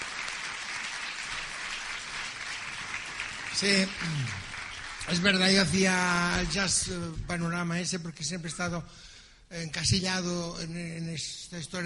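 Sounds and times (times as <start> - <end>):
audience applause: 0.0 - 6.9
speech: 3.6 - 4.5, 5.1 - 11.8.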